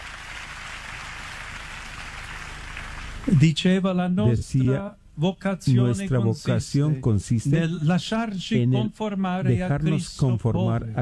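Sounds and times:
audience applause: 0.0s - 3.2s
speech: 3.3s - 11.0s.

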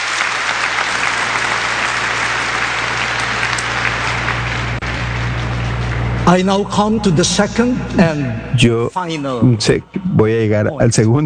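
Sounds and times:
audience applause: 0.0s - 6.2s
low hum: 0.5s - 11.2s
speech: 6.3s - 11.2s.

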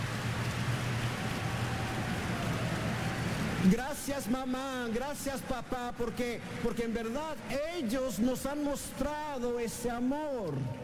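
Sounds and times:
crowd clapping loudly: 0.0s - 4.3s
speech: 3.6s - 10.8s.

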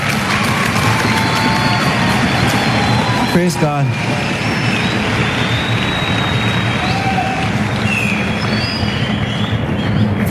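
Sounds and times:
applause: 0.0s - 10.2s
speech: 3.4s - 4.6s.

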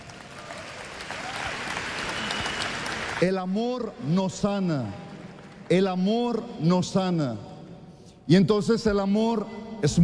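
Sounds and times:
audience applause: 0.0s - 3.2s
speech: 3.2s - 5.0s, 5.7s - 7.5s, 8.3s - 10.0s.

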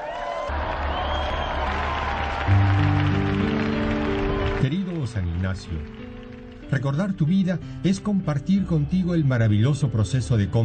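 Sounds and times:
audience applause: 0.0s - 7.0s
speech: 4.6s - 10.6s.

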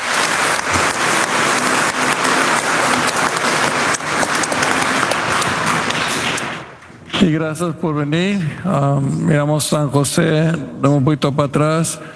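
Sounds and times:
audience applause: 0.0s - 6.8s
speech: 7.2s - 12.1s.

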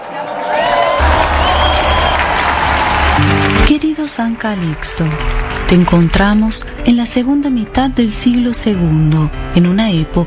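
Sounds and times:
audience applause and cheering: 0.0s - 7.6s
whistles and whoops: 0.6s - 3.3s
speech: 4.1s - 10.2s.

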